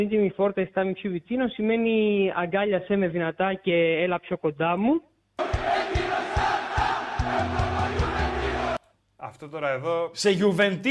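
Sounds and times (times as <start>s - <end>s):
speech: 0.0s - 6.5s, 9.2s - 10.8s
football fans chanting in stadium: 5.4s - 8.8s
rhythmic thumping beats: 5.4s - 8.8s.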